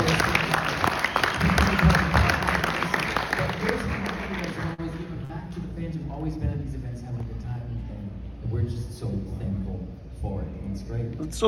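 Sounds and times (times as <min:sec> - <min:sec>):
audience clapping at a fan convention panel: 0:00.0 - 0:05.1
people talking: 0:01.4 - 0:11.4.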